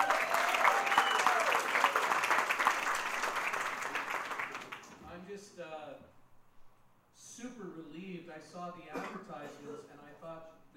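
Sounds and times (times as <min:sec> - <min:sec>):
audience applause welcoming a guest at an event in Conroe: 0:00.0 - 0:05.0
whistling: 0:00.8 - 0:01.6
speech: 0:08.4 - 0:10.6.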